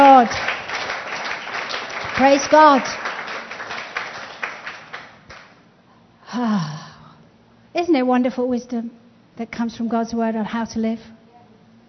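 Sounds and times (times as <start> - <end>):
audience applauding: 0.0 - 5.6
speech: 2.2 - 3.1, 7.8 - 11.2.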